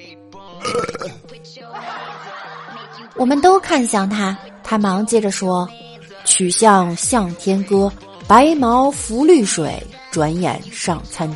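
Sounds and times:
speech: 0.4 - 11.3
loud burps after overeating: 0.6 - 1.3
laughter: 1.6 - 3.4.

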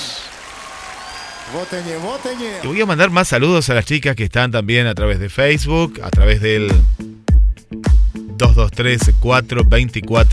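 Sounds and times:
applause sound effect: 0.0 - 3.7
speech: 1.5 - 10.3.

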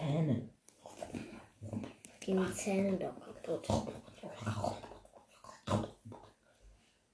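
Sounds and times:
dog snorting and grunting: 0.9 - 6.4
speech: 2.3 - 4.8.

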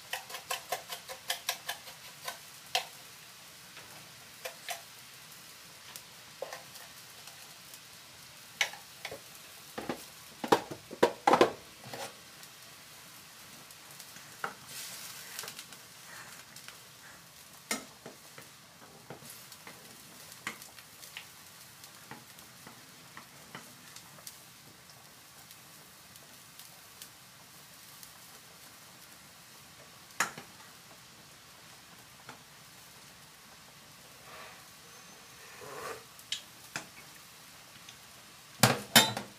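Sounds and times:
food frying for lunchboxes: 0.0 - 39.3
utensils and pans clattering: 38.6 - 39.3.

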